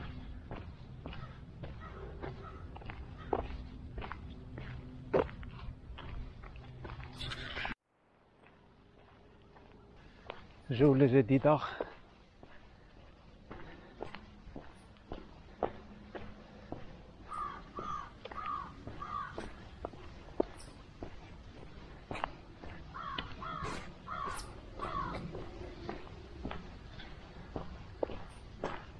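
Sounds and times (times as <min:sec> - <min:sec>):
steady footsteps on a morning walk: 0:00.0 - 0:28.9
crows cawing during a morning walk: 0:01.0 - 0:03.6, 0:16.6 - 0:20.7, 0:22.2 - 0:27.2
speech: 0:10.7 - 0:11.9.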